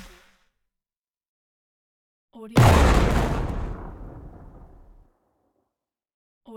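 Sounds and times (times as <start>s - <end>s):
hit: 2.6s - 5.0s.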